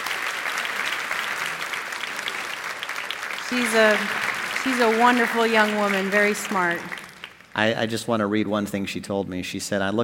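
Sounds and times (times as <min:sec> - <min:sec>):
audience applause: 0:00.0 - 0:07.8
speech: 0:03.5 - 0:07.0, 0:07.6 - 0:10.0.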